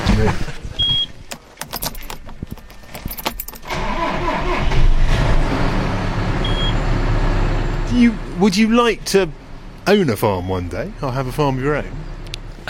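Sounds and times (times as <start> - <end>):
tractor engine starting and rumbling: 0.0 - 12.6
speech: 0.2 - 0.6, 8.0 - 12.1
keys jingling and clicking: 1.2 - 3.7.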